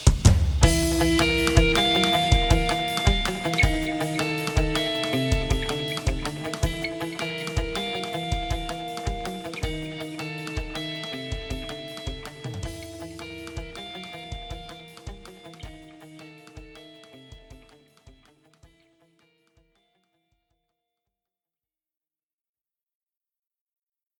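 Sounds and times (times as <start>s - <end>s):
instrumental music: 0.0s - 18.9s.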